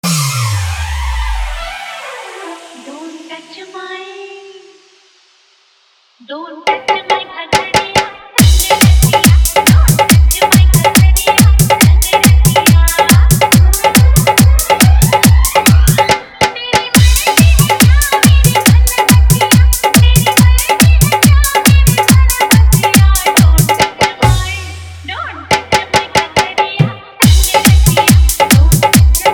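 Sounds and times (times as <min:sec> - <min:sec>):
bass-heavy dance mix: 0:00.0 - 0:03.6, 0:08.4 - 0:25.6, 0:27.2 - 0:29.3
hard dholak drumming: 0:06.6 - 0:29.3.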